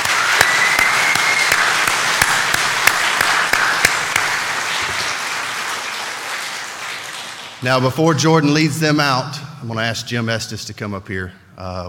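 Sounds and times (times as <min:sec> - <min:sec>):
audience applause: 0:00.0 - 0:07.7
speech: 0:07.6 - 0:11.8.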